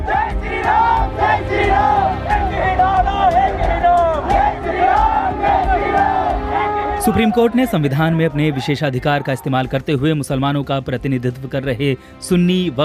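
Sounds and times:
crowd chanting religious slogans at Supreme Court premises: 0.0 - 8.7
speech: 7.0 - 12.8.

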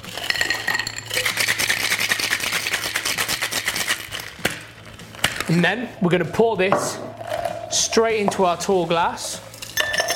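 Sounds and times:
ice rattling in a cocktail shaker: 0.0 - 4.4, 9.5 - 10.1
speech: 5.5 - 9.4.

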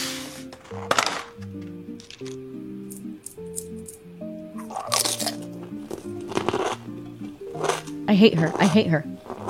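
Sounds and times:
steady music: 0.0 - 9.4
woman biting into a chocolate egg: 0.6 - 9.4
speech: 0.7 - 2.4, 8.1 - 9.1
chewing squishes: 4.6 - 6.8.

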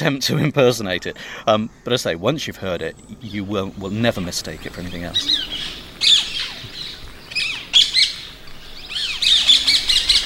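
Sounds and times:
speech: 0.0 - 6.1
ringneck parakeets shrieking calls: 3.3 - 10.2.

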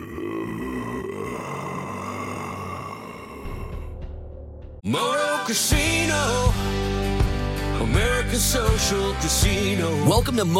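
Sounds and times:
low groan: 0.0 - 4.8
speech: 4.9 - 6.9, 7.8 - 10.5.

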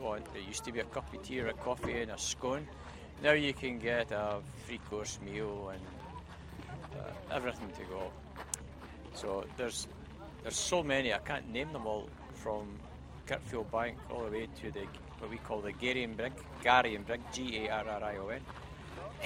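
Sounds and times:
car boot sale ambience in the Clyde valley: 0.0 - 19.2.

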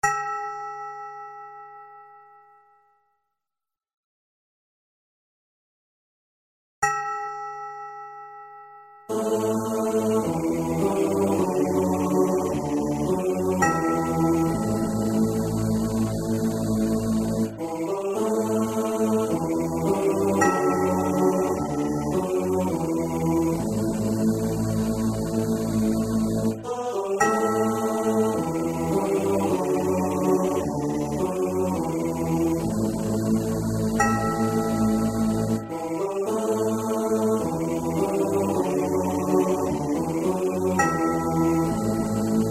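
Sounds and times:
bells: 6.8 - 36.7, 40.7 - 42.4
choir: 9.1 - 42.4.

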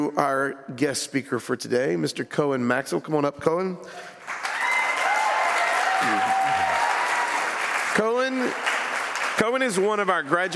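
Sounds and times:
speech: 0.0 - 4.4, 8.0 - 8.7, 9.4 - 10.5
crowd applauding: 4.0 - 10.5
scattered cheers and whoops: 4.3 - 7.7
loud shout: 4.4 - 7.6.

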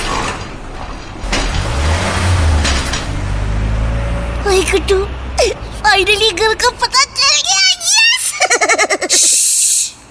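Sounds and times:
car driving in through a gate: 0.0 - 7.3
speech: 4.6 - 7.6
laughter: 8.2 - 9.6.

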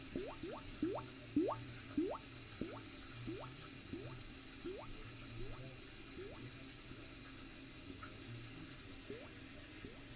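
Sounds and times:
bubbles: 0.0 - 6.6, 9.0 - 10.0.

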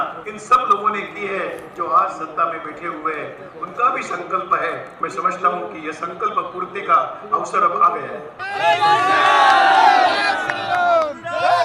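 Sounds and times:
speech: 0.0 - 10.2
crowd of sadhus and saints chanting religious slogans: 8.4 - 11.6.

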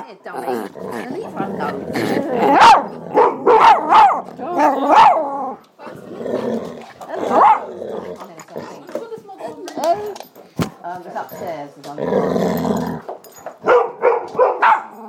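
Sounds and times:
people talking: 0.0 - 3.1, 4.2 - 12.4
dogs growling: 0.0 - 13.4
several dogs barking and yelping: 0.5 - 5.6, 7.1 - 8.8, 13.6 - 15.0.

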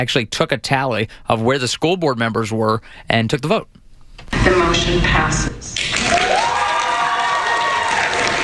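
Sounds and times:
speech: 0.0 - 6.5
school board meeting audience cheering and shouting after a motion passes: 6.0 - 8.4.

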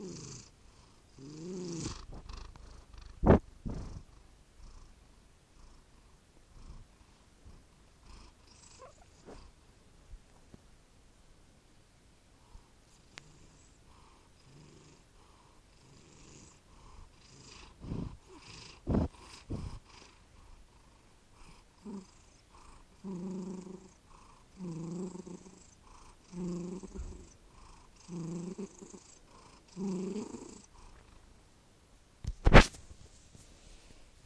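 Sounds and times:
cat Tigger purring: 0.0 - 9.6, 12.5 - 31.3
cat Tigger squeaking: 8.8 - 9.2.

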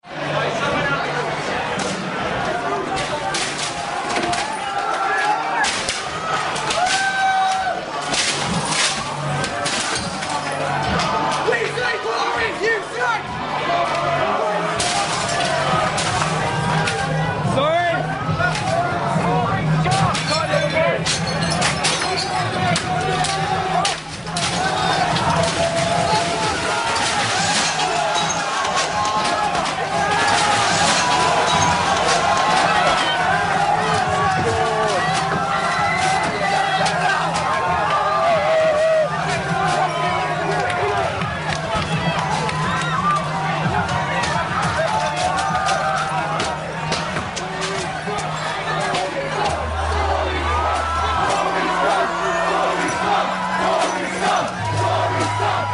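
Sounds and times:
student protest crowd inside Millbank in London: 0.0 - 55.7.

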